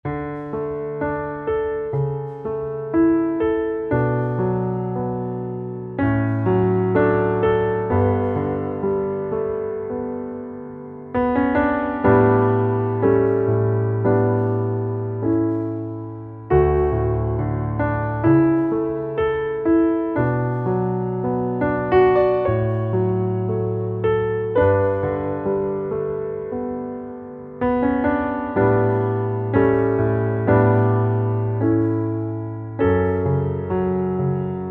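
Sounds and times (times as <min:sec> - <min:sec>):
piano underscore: 0:00.0 - 0:34.6.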